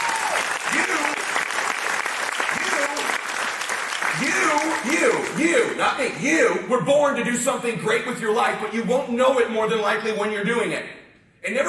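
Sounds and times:
crowd applauding: 0:00.0 - 0:05.8
speech: 0:04.8 - 0:11.6.

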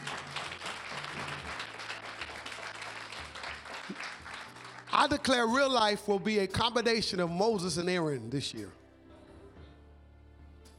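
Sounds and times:
audience clapping: 0:00.0 - 0:05.9
speech: 0:05.0 - 0:08.8.

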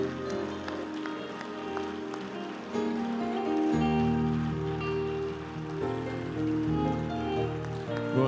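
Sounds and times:
audience clapping hands: 0:00.0 - 0:08.2.

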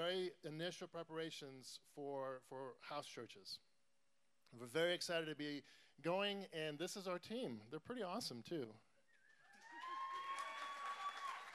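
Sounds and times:
speech: 0:00.0 - 0:03.7, 0:04.5 - 0:08.9
small group cheering and clapping: 0:09.2 - 0:11.5
sustained high whoop: 0:09.2 - 0:11.5.

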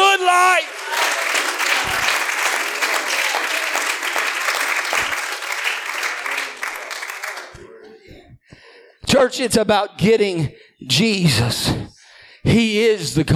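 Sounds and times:
audience clapping hands: 0:00.0 - 0:07.8
speech: 0:09.2 - 0:13.3.

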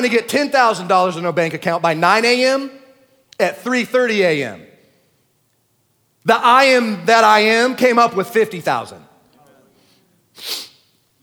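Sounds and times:
speech: 0:00.0 - 0:02.8, 0:03.4 - 0:04.7, 0:06.2 - 0:09.1, 0:10.4 - 0:10.6
person sniffing after crying: 0:09.8 - 0:11.0.

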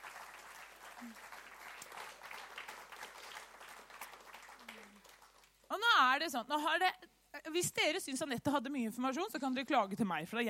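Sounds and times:
audience applause: 0:00.0 - 0:05.6
speech: 0:01.0 - 0:01.3, 0:06.0 - 0:10.4.

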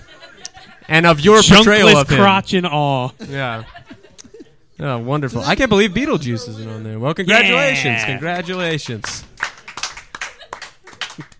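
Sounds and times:
speech: 0:00.9 - 0:03.8, 0:04.8 - 0:09.3
hand clapping: 0:08.3 - 0:11.3.

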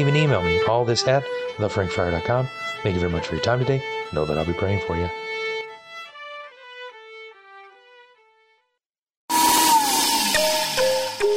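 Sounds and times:
speech: 0:00.0 - 0:05.3
loud blender motor running: 0:09.3 - 0:11.3
gentle tinkling melody: 0:10.2 - 0:11.3.

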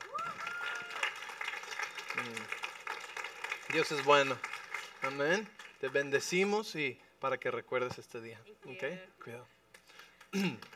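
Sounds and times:
audience applause: 0:00.0 - 0:05.9
speech: 0:02.2 - 0:02.6, 0:03.7 - 0:09.6, 0:10.3 - 0:10.7.

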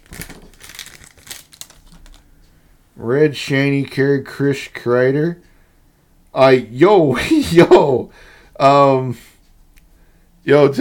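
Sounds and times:
crinkly wrapper of a pack of hockey trading cards crackling and tearing: 0:00.0 - 0:02.2
speech: 0:03.0 - 0:05.5, 0:06.4 - 0:09.3, 0:10.4 - 0:10.7.

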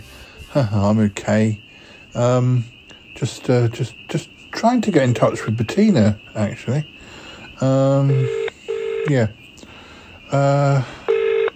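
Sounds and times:
speech: 0:00.5 - 0:06.9, 0:07.6 - 0:08.4, 0:09.0 - 0:09.4, 0:10.3 - 0:11.0
telephone dialing tones: 0:08.1 - 0:09.2, 0:11.1 - 0:11.5.

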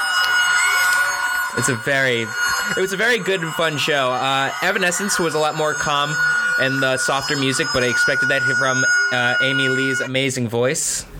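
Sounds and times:
crowd cheering: 0:00.0 - 0:07.9
bagpipes playing: 0:00.0 - 0:10.1
speech: 0:01.6 - 0:11.1.

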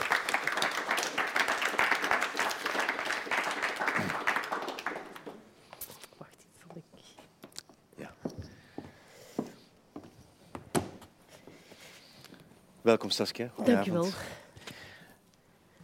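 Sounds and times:
audience applause: 0:00.0 - 0:05.6
speech: 0:12.9 - 0:14.4.

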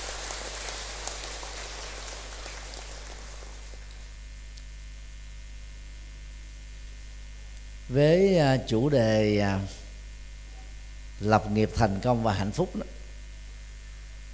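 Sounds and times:
loud round of applause: 0:00.0 - 0:04.2
steady electrical hum: 0:00.0 - 0:14.3
speech: 0:07.9 - 0:09.8, 0:11.2 - 0:12.9.

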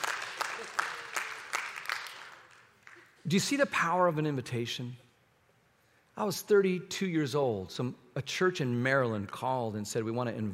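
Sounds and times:
audience clapping: 0:00.0 - 0:03.2
speech: 0:03.3 - 0:05.0, 0:06.2 - 0:10.5.

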